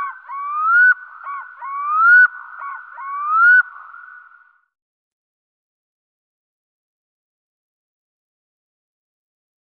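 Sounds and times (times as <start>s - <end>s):
black-throated loon calling: 0.0s - 4.5s.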